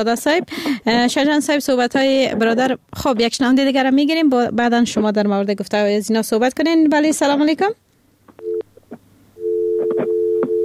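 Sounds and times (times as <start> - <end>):
speech: 0.0 - 7.8
busy tone on a phone line after a call drops: 8.4 - 8.7, 9.4 - 10.6.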